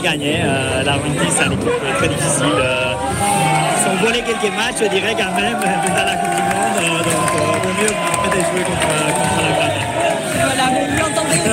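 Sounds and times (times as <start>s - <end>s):
crowd shouting and singing celebrating victory of Spain: 0.0s - 11.5s
speech: 0.0s - 11.5s.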